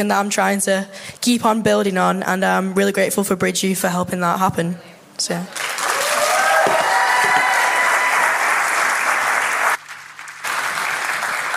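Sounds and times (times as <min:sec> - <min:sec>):
speech: 0:00.0 - 0:05.8
audience applause: 0:05.6 - 0:11.5.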